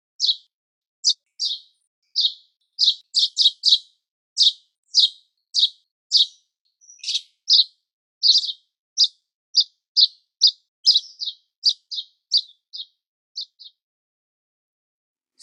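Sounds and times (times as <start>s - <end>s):
house sparrow calling: 0.2s - 13.8s.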